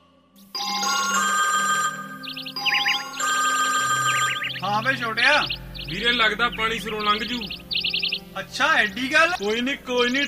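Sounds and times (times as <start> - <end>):
phone ringing in an electronic ringtone: 0.6 - 5.7
speech: 4.8 - 7.6, 8.4 - 10.2.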